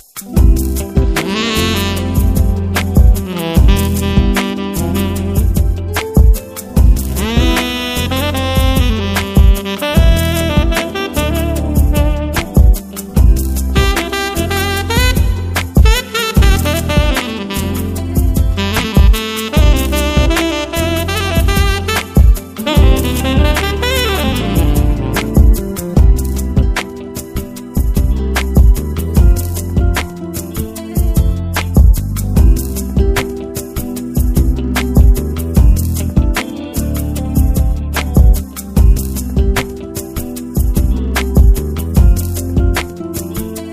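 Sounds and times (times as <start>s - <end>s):
smooth jazz: 0.1s - 43.7s.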